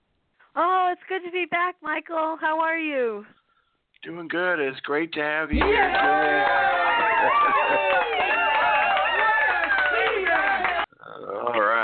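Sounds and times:
speech: 0.6s - 3.4s, 4.0s - 8.5s
talk show studio audience clapping for a returning guest: 5.6s - 10.9s.

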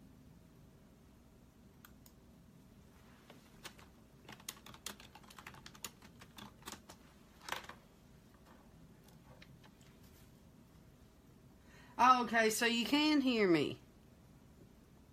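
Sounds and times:
typing on a computer keyboard: 3.6s - 7.8s
speech: 12.1s - 13.8s.

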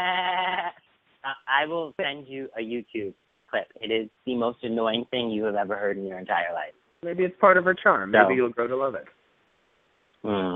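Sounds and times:
voice imitating a dolphin-like laugh: 0.0s - 0.8s
speech: 1.5s - 9.2s, 10.2s - 10.5s.

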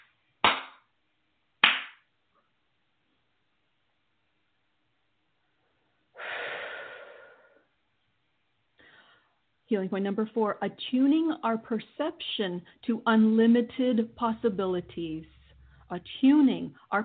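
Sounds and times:
hands clapping in front of body: 0.0s - 0.9s, 1.6s - 2.1s
long breathy exhale: 6.1s - 7.7s
speech: 9.7s - 17.0s.

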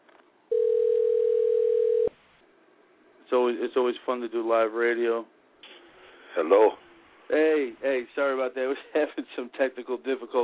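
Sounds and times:
telephone dial tone while calling a caller back: 0.5s - 2.1s
speech: 3.3s - 5.4s, 6.4s - 10.4s.

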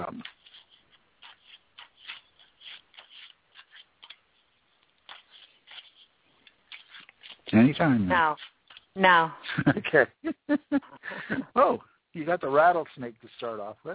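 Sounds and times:
deck of cards shuffling: 0.0s - 9.0s
speech: 7.6s - 13.9s.

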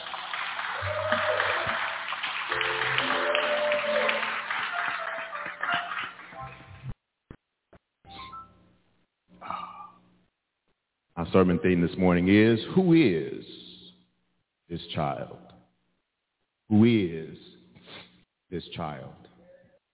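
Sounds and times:
audience round of applause: 0.0s - 6.6s
speech: 11.3s - 13.5s, 15.0s - 15.4s, 18.8s - 19.2s.

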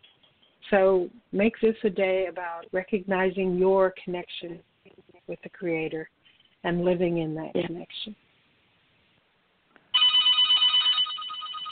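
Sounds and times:
speech: 0.7s - 4.7s, 5.3s - 8.2s
telephone bell ringing: 9.9s - 11.7s.

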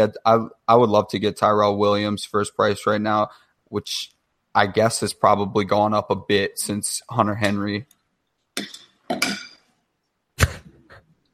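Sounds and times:
speech: 0.0s - 8.0s, 8.6s - 9.4s
spoon slapped against something: 8.6s - 9.7s.

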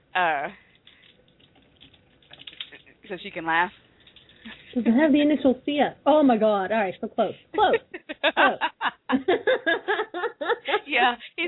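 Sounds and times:
speech: 0.2s - 0.6s, 3.1s - 3.8s, 4.4s - 11.4s
typing on a computer keyboard: 0.8s - 2.9s
laughter: 7.6s - 11.2s.

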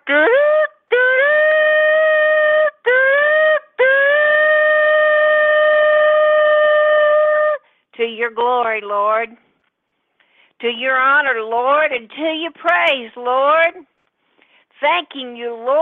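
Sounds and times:
shofar blast: 1.2s - 7.5s
speech: 8.3s - 9.3s, 10.6s - 13.9s, 14.8s - 15.7s.

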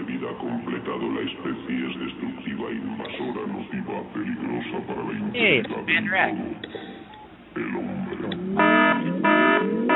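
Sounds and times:
speech: 0.3s - 7.0s, 7.6s - 9.9s
alarm going off with buzzing harmonic beeps: 8.4s - 9.9s.

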